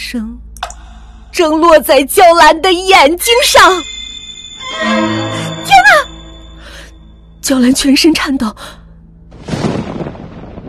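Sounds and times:
speech: 0.1 - 0.5, 1.4 - 4.0, 4.7 - 6.1, 7.4 - 8.8
thunder: 9.3 - 10.6.

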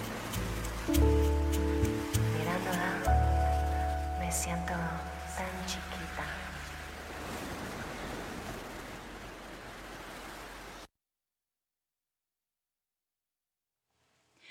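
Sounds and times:
sea sound: 0.0 - 10.9.

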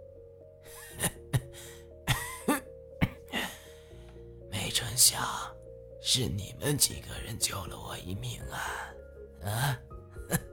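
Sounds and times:
man coughing weakly: 0.9 - 1.5, 2.1 - 3.6
speech: 5.0 - 10.5.

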